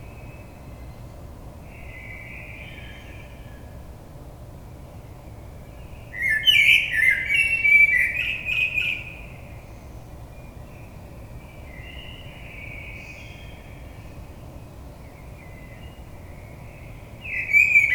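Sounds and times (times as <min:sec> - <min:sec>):
Common blackbird singing: 0:06.1 - 0:09.2, 0:17.2 - 0:17.9.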